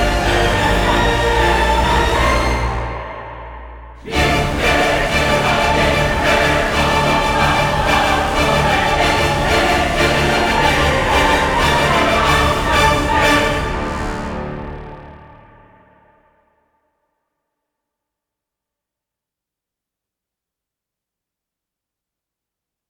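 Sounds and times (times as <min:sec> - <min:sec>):
orchestra: 0:00.0 - 0:15.8
choir: 0:00.0 - 0:16.1.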